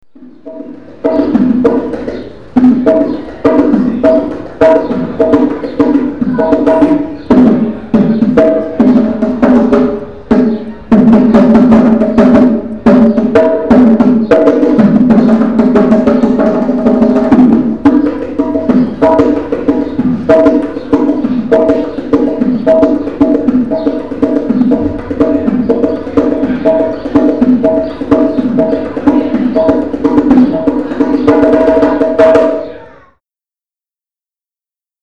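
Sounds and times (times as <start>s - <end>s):
bongos: 0.0s - 33.2s.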